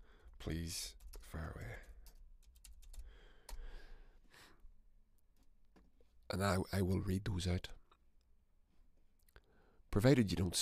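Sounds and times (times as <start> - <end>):
speech: 0.4 - 1.9, 6.3 - 7.7, 10.0 - 10.6
computer keyboard typing: 0.8 - 3.7.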